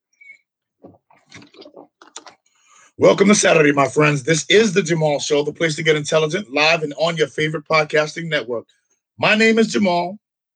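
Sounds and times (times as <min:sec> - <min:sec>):
person drinking water: 0:00.8 - 0:02.9
speech: 0:03.0 - 0:10.2.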